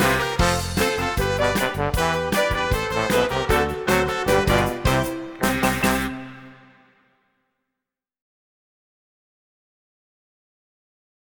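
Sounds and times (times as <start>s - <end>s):
Mexican brass music: 0.0s - 7.2s.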